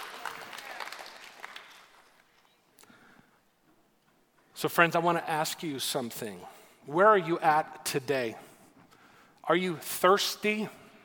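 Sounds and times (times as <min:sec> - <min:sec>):
audience applauding: 0:00.0 - 0:02.4
speech: 0:04.6 - 0:08.5, 0:09.5 - 0:10.8.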